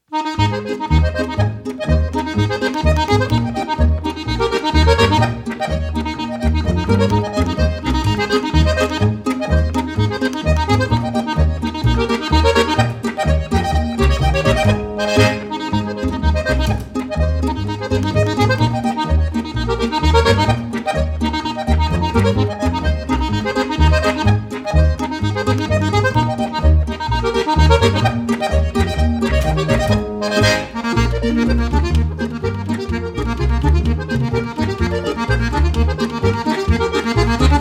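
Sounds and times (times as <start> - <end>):
polka music: 0.0 - 37.5.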